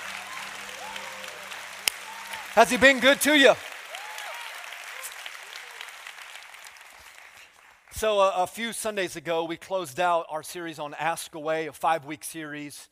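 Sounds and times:
audience applause: 0.0 - 7.9
speech: 2.6 - 3.6, 8.0 - 12.8.

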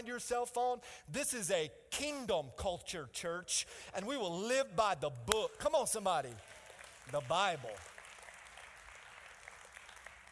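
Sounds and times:
speech: 0.1 - 7.9
light polite applause from audience: 6.2 - 10.3.

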